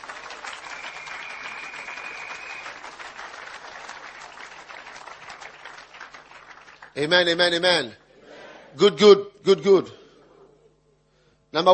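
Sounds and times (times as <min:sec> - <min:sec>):
audience clapping: 0:00.0 - 0:07.6
speech: 0:07.0 - 0:08.0, 0:08.8 - 0:10.0, 0:11.5 - 0:11.7.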